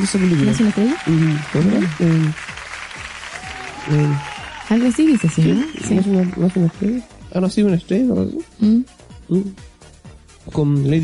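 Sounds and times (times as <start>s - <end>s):
speech: 0.0s - 2.6s, 3.9s - 9.7s, 10.5s - 11.0s
applause: 0.0s - 7.1s.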